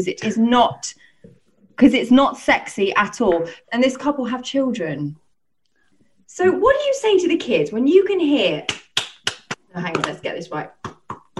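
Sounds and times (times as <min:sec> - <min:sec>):
speech: 0:00.0 - 0:05.2, 0:06.3 - 0:08.8, 0:09.8 - 0:11.0
hand clapping: 0:08.7 - 0:11.3.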